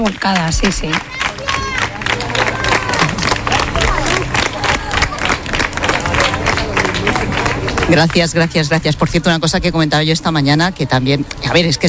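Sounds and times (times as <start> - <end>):
speech: 0.0 - 1.2, 7.9 - 11.8
crowd applauding: 0.0 - 8.9.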